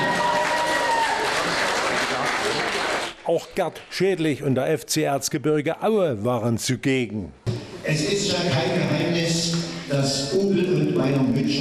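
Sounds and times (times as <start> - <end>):
fans applauding FC Bayern München Amateure representatives: 0.0 - 4.0
speech: 3.3 - 11.5.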